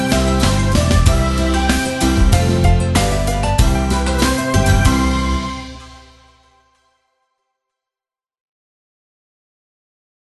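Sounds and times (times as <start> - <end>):
upbeat happy music: 0.0 - 6.9.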